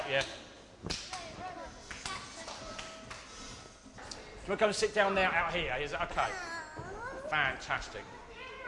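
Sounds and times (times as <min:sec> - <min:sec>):
hands clapping: 0:00.0 - 0:03.7
speech: 0:00.1 - 0:01.1, 0:04.5 - 0:06.6, 0:07.3 - 0:08.2.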